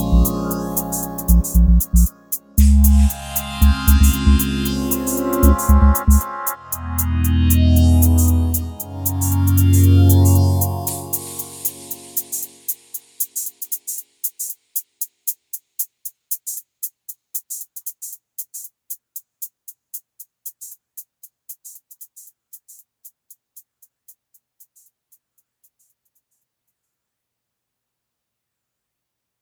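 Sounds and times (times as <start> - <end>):
ambient soundscape: 0.0 - 12.7.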